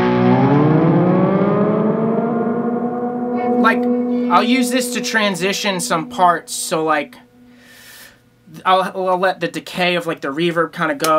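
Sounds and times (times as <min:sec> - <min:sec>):
guitar tone with pitch-shifter pedal effect: 0:00.0 - 0:08.6
speech: 0:03.7 - 0:07.2, 0:08.5 - 0:11.1.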